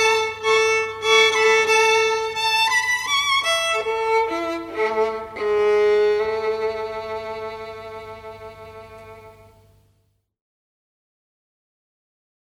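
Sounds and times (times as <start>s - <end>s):
square dance music: 0.0s - 8.0s.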